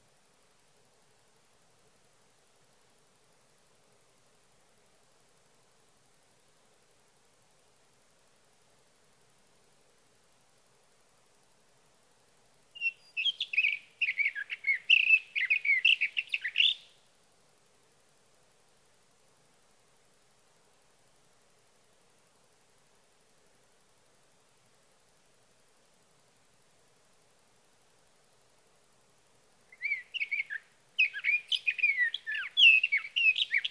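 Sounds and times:
sage thrasher: 12.8 - 16.9, 29.7 - 33.6.

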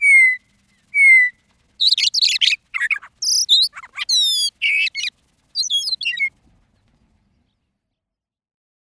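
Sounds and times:
Western Meadowlark: 0.0 - 6.3.

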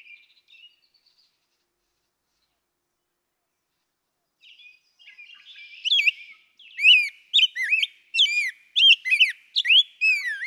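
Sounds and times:
Rose-breasted Grosbeak whistled song: 4.5 - 10.4.

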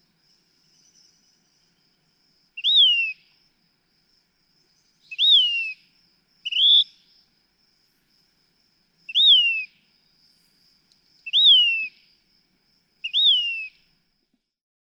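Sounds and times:
Say's Phoebe calling a repeated pit-TSEEeeuur: 5.0 - 5.8, 6.4 - 7.0, 9.1 - 9.7, 11.2 - 12.0, 13.0 - 13.8.

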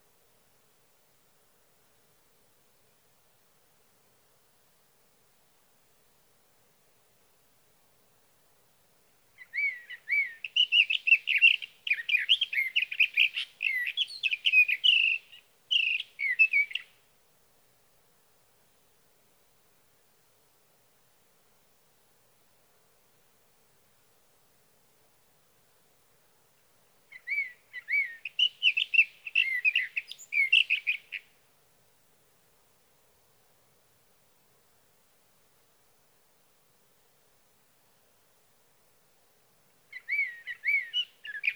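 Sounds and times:
Sage Thrasher singing through the night: 9.4 - 16.9, 27.1 - 31.2, 39.9 - 41.5.

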